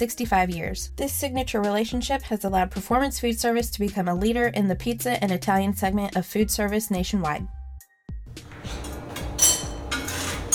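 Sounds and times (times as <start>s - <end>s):
speech: 0.0s - 7.6s
utensils and pans clinking while a pizza is made: 8.6s - 10.5s.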